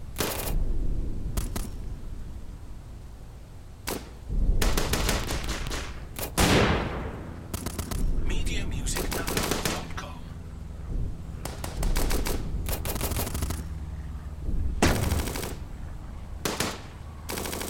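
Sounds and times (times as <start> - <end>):
WWII planes over a forest battlefield: 0.0 - 17.6
distant explosions on a WWII forest battlefield: 3.8 - 17.6.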